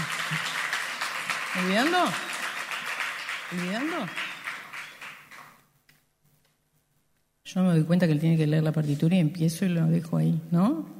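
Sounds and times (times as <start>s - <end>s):
audience applause: 0.0s - 5.6s
speech: 1.6s - 2.3s, 3.5s - 4.2s, 7.6s - 10.9s.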